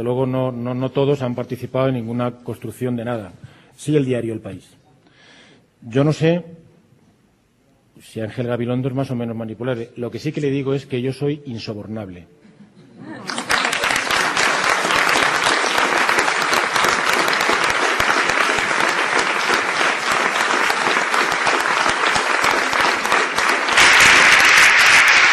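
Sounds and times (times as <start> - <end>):
speech: 0.0 - 4.8, 5.8 - 6.6, 8.0 - 12.4
large audience applause: 13.2 - 25.3.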